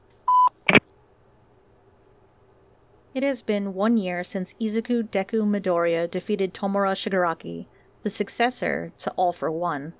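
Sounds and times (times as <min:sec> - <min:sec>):
voicemail tone electronic beep: 0:00.3 - 0:00.6
speech: 0:03.1 - 0:09.9.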